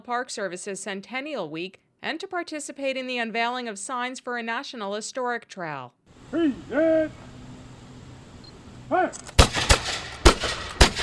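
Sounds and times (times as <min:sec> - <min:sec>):
speech: 0:00.0 - 0:07.3, 0:08.9 - 0:09.4
living history reenactors shouting calls: 0:06.3 - 0:07.3, 0:08.9 - 0:09.2
gun salute by living history reenactors at FDR State Park in Westchester: 0:09.3 - 0:11.0.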